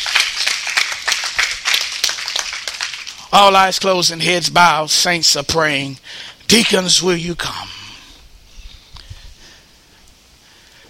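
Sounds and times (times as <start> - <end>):
audience clapping in praise: 0.0 - 3.2
speech: 3.3 - 7.8.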